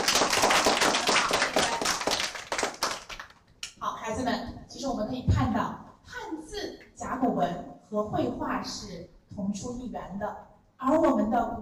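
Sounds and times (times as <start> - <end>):
children applauding: 0.0 - 3.4
speech: 4.1 - 5.8, 7.0 - 11.6.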